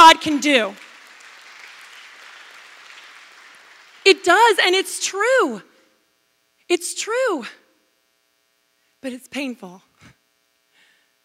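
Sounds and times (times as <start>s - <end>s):
audience applause: 0.0s - 4.3s
speech: 0.1s - 0.9s, 4.1s - 5.7s, 6.7s - 7.6s, 9.0s - 9.9s.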